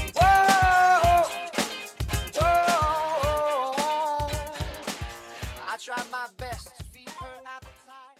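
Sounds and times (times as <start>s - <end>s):
82 BPM downtempo alternative rock: 0.0s - 5.6s.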